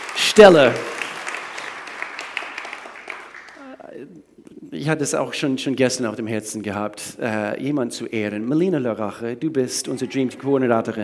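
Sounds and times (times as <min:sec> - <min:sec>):
audience applause: 0:00.0 - 0:03.8
speech: 0:00.4 - 0:00.9, 0:04.8 - 0:11.0.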